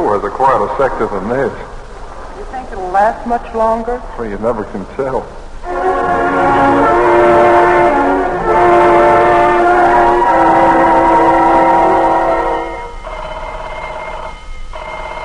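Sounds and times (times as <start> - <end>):
speech: 0.2 - 1.8, 2.4 - 6.9
air raid all-clear siren: 5.7 - 15.2.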